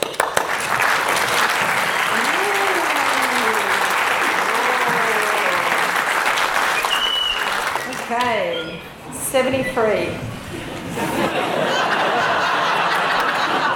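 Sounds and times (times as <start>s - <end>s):
audience clapping: 0.0s - 8.6s, 11.9s - 13.7s
laughter: 2.1s - 6.0s, 10.4s - 13.7s
speech: 9.4s - 10.3s.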